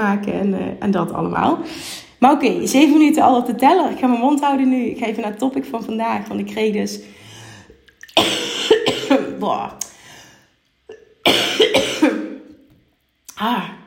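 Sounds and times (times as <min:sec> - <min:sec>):
speech: 0:00.1 - 0:07.2, 0:09.4 - 0:09.8
person coughing with throat-clearing: 0:08.2 - 0:09.4, 0:10.9 - 0:12.5.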